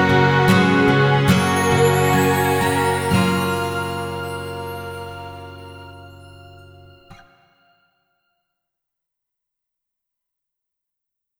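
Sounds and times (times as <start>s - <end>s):
acoustic music: 0.0s - 7.6s.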